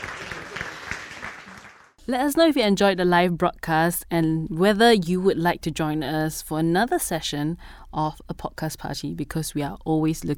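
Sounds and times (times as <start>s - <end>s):
audience applause: 0.0s - 2.0s
speech: 2.1s - 10.3s.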